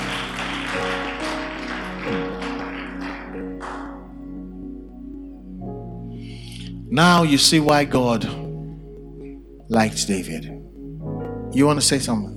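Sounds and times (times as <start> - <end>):
audience clapping hands: 0.0 - 4.2
speech: 6.9 - 8.4, 9.7 - 10.6, 11.6 - 12.3.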